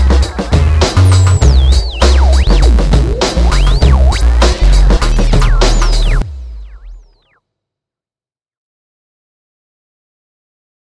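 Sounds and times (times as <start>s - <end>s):
electro music: 0.0s - 7.4s.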